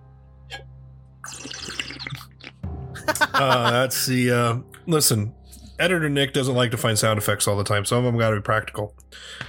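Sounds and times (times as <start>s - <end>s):
person sipping coffee: 1.2s - 2.6s
laughter: 3.0s - 4.1s
speech: 3.4s - 9.4s.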